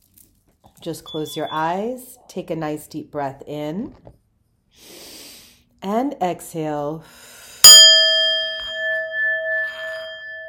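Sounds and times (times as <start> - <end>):
speech: 0.8 - 4.2, 5.8 - 7.3
singing bowl being struck and ringing: 1.0 - 1.8, 7.6 - 10.4.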